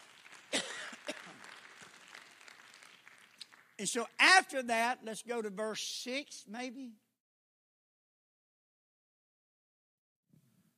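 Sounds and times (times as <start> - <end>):
people clapping hands: 0.0 - 4.7
speech: 3.8 - 7.0.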